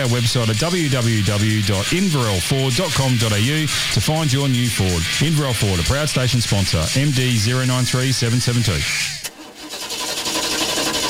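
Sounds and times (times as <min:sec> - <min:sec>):
speech: 0:00.0 - 0:09.2
car engine struggling to start in cold weather: 0:09.1 - 0:11.0.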